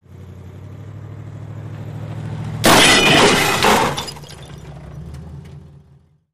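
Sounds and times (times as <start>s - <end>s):
glass breaking: 2.6s - 4.7s
moving vehicle colliding with stationary vehicle: 2.6s - 5.9s.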